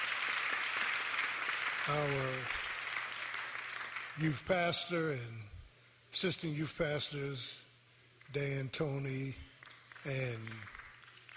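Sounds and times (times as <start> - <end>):
audience applause: 0.0 - 4.5, 9.6 - 11.3
speech: 1.8 - 2.6, 4.2 - 7.6, 8.3 - 10.8.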